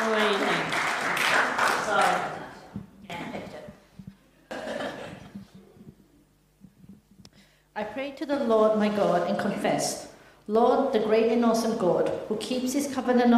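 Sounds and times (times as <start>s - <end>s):
audience applause for a reader: 0.0s - 2.6s
speech: 8.2s - 13.3s.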